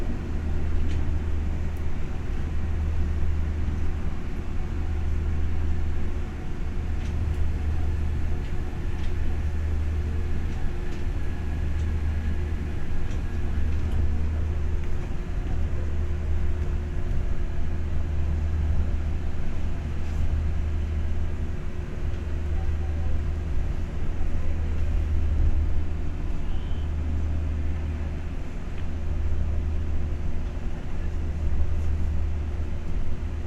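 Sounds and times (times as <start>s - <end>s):
train departing with ambience while riding on board: 0.0s - 33.4s.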